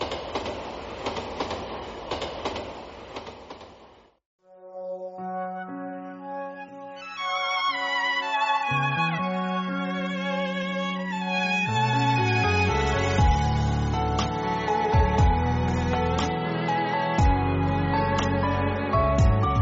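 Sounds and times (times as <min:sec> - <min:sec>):
train wheels clickety-clack on rails: 0:00.0 - 0:04.0
passenger train rumbling on rails: 0:00.0 - 0:04.2, 0:10.1 - 0:19.6
melodic music with sustained tones: 0:04.4 - 0:19.6.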